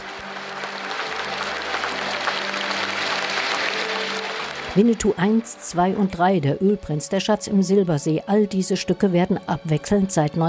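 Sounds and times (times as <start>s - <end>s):
theatre audience applause: 0.0s - 5.5s
speech: 4.8s - 10.4s.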